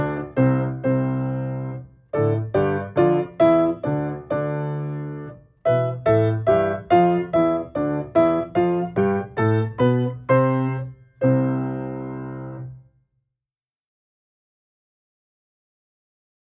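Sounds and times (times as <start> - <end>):
piano playing scale exercise in octaves: 0.0 - 12.8.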